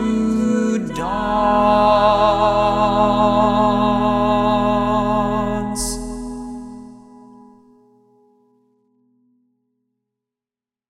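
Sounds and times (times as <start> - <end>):
tenor singing: 0.0 - 7.0.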